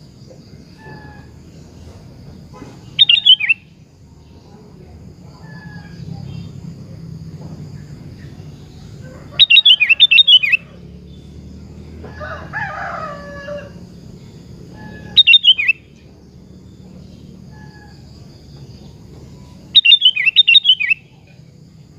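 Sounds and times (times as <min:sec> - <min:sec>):
sooty-headed bulbul singing bubbling phrases: 0:00.0 - 0:07.0, 0:07.8 - 0:21.9.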